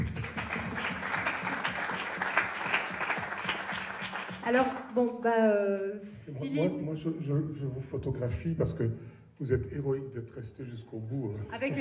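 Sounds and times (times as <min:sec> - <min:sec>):
audience applause: 0:00.0 - 0:04.9
speech: 0:04.5 - 0:11.8.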